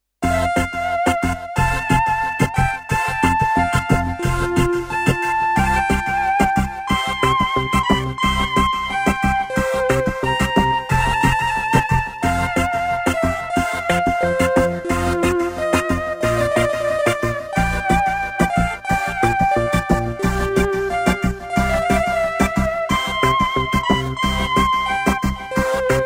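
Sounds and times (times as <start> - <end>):
flute and basso continuo sonata adagio: 0.2 - 26.0.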